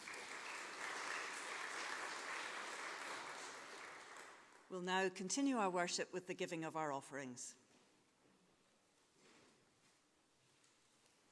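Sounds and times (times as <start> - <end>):
audience applause: 0.0 - 4.7
speech: 4.7 - 7.6.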